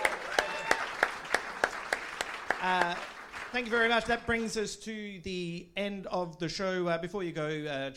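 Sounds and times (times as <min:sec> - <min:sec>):
audience applause: 0:00.0 - 0:04.1
speech: 0:02.6 - 0:07.9.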